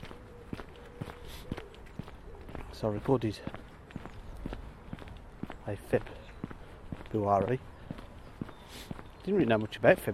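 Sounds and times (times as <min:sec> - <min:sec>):
footsteps of a person walking towards Manor Farm Park in Birmingham: 0:00.0 - 0:09.4
low outdoor background: 0:00.0 - 0:10.1
speech: 0:02.8 - 0:03.6, 0:05.7 - 0:06.2, 0:07.1 - 0:07.7, 0:09.3 - 0:10.1.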